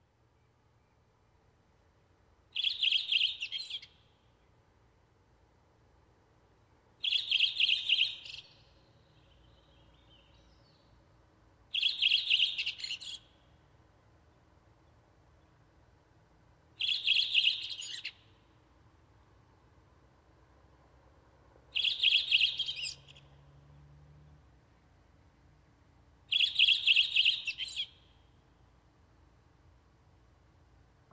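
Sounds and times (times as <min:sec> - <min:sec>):
redwing singing: 0:02.5 - 0:04.6, 0:07.0 - 0:11.0, 0:11.7 - 0:13.4, 0:16.8 - 0:18.4, 0:21.7 - 0:23.4, 0:26.3 - 0:28.2.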